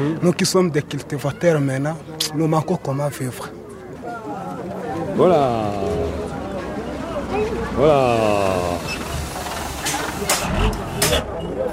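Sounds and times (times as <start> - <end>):
speech: 0.0 - 3.6, 5.2 - 6.0, 7.3 - 9.0
ore-hauling truck engine and exhaust: 5.7 - 11.7.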